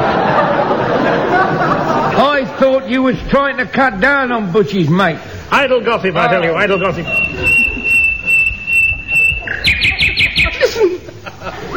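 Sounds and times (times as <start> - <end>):
laughter: 0.0 - 3.0, 5.9 - 11.7
low murmur: 0.0 - 11.7
speech: 2.8 - 7.6
bird crying out loudly: 7.1 - 10.7.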